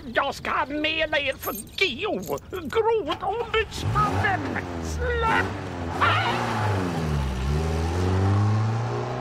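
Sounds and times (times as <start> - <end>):
speech: 0.3 - 6.7
car driving off with its engine revving: 3.6 - 9.1.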